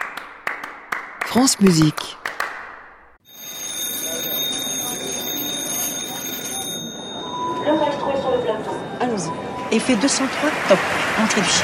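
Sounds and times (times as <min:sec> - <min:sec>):
speech: 0:01.3 - 0:02.2, 0:09.2 - 0:11.6
shrill electric ringing tone announcing a radio segment: 0:03.2 - 0:09.8.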